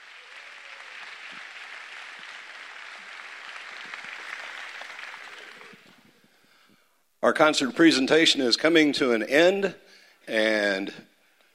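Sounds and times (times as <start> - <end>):
audience applause: 0.0 - 6.2
speech: 7.2 - 11.1.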